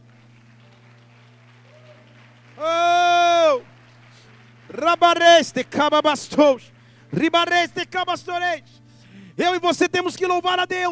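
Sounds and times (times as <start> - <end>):
audience applause: 0.0 - 7.4
low sustained keyboard or organ drone: 0.0 - 10.8
speech: 2.6 - 2.8, 4.8 - 8.8, 9.4 - 10.8.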